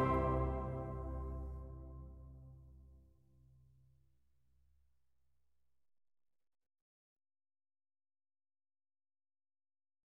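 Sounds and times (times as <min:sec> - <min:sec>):
liturgical singing: 0:00.0 - 0:01.5.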